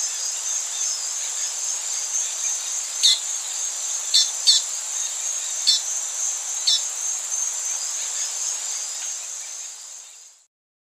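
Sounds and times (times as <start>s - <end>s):
Black-and-white seedeater singing in Ecuador: 0.8s - 8.4s.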